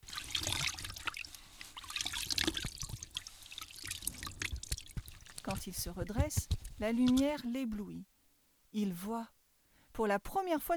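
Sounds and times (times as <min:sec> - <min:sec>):
water from a reservoir splashing as a man washes mud off his face: 0:00.0 - 0:07.4
speech: 0:05.5 - 0:08.1, 0:08.7 - 0:09.4, 0:10.0 - 0:10.7.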